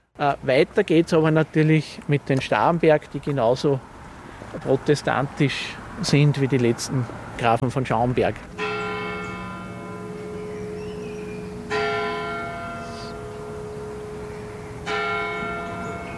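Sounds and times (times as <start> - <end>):
speech: 0.2 - 3.9, 4.5 - 8.6
eleven o'clock bells of the Everdingen town parish church ringing: 8.5 - 16.1.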